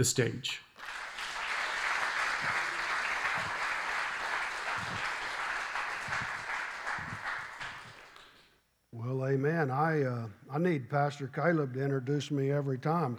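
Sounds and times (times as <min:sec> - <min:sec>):
speech: 0:00.0 - 0:00.7, 0:09.1 - 0:13.1
audience round of applause: 0:00.8 - 0:08.4.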